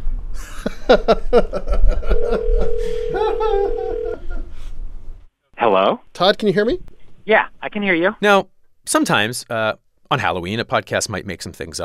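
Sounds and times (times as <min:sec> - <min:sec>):
rhythmic chuckling laughter: 0:00.4 - 0:04.6
speech: 0:00.9 - 0:04.3, 0:05.6 - 0:11.8
telephone dial tone: 0:02.2 - 0:04.2.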